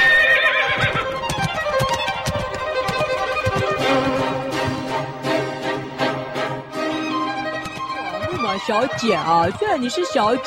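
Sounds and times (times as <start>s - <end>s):
horse pulling a carriage whinnying: 0.0s - 1.3s
horse hooves clip-clopping: 0.0s - 6.0s, 7.2s - 10.4s
speech: 8.6s - 10.4s.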